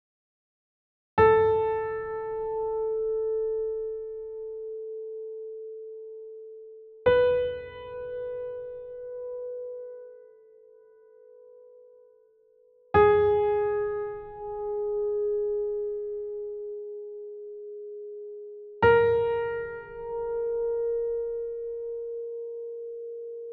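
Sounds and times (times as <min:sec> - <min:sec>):
piano: 0:01.2 - 0:23.5.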